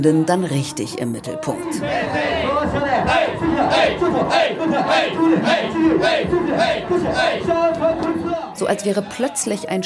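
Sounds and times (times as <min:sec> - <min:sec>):
speech: 0:00.0 - 0:09.8
group of men chanting in unison: 0:01.6 - 0:08.6.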